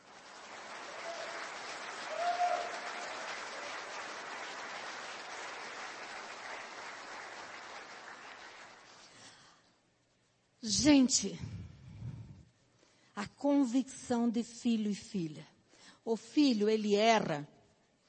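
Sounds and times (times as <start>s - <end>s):
applause: 0.0s - 9.6s
speech: 10.6s - 11.6s, 13.4s - 17.6s.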